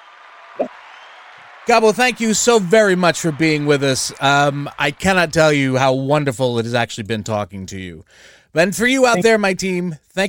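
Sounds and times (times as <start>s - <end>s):
applause: 0.0s - 6.7s
speech: 0.6s - 0.8s, 1.6s - 10.2s.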